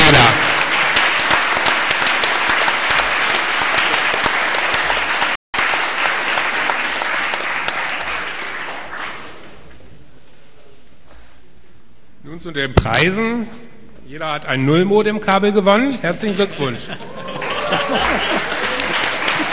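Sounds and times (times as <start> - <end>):
audience applause: 0.0 - 9.6, 17.0 - 19.5
speech: 12.4 - 18.6
laughter: 16.2 - 19.5.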